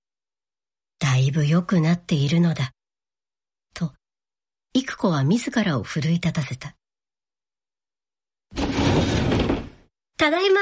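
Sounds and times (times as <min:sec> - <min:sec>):
speech: 0:01.2 - 0:02.8, 0:03.8 - 0:04.0, 0:04.8 - 0:06.8, 0:10.2 - 0:10.5
sliding door yanked open vigorously: 0:08.5 - 0:09.9.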